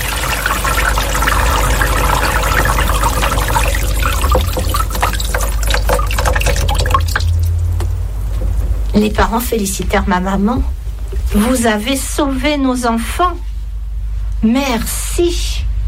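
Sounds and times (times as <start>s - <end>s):
heavy rain pouring from dark clouds: 0.0s - 8.2s
speech: 9.0s - 13.5s, 14.4s - 15.7s.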